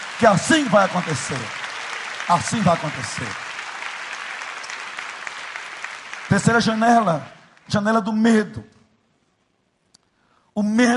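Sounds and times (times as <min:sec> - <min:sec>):
audience applause: 0:00.0 - 0:07.9
speech: 0:00.2 - 0:01.6, 0:02.3 - 0:03.4, 0:06.3 - 0:08.8, 0:10.6 - 0:10.9.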